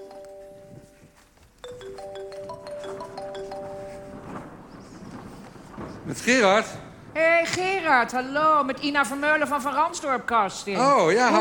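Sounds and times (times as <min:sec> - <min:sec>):
telephone ringing with melodic electronic tone: 0:00.0 - 0:04.3
speech: 0:06.1 - 0:11.3.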